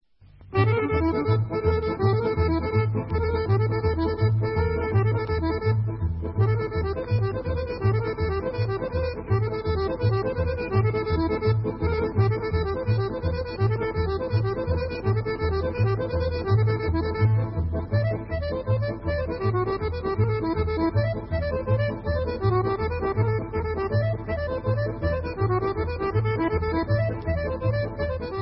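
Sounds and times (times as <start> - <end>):
Bulgarian sopluk flute: 0.5 - 5.8, 6.4 - 28.3.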